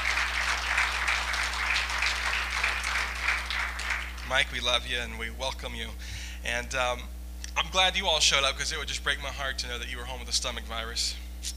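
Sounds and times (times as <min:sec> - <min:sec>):
audience applause from people seated in pews: 0:00.0 - 0:04.6
speech: 0:04.3 - 0:11.5.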